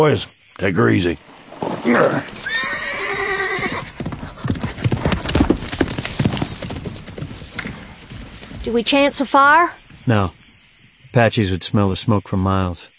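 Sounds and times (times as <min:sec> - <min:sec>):
speech: 0:00.0 - 0:02.6, 0:08.7 - 0:10.4, 0:11.1 - 0:12.9
horse hooves clip-clopping: 0:01.2 - 0:10.6
horse neighing: 0:01.8 - 0:05.0.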